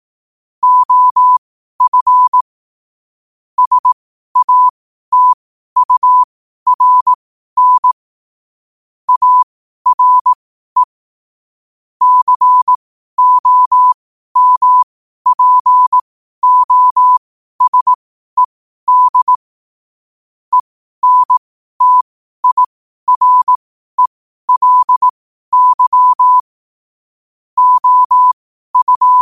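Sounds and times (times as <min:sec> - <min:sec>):
morse code at 5 wpm: 0:00.6 - 0:02.4, 0:03.6 - 0:08.0, 0:09.1 - 0:10.9, 0:12.0 - 0:19.4, 0:20.5 - 0:26.5, 0:27.6 - 0:29.1.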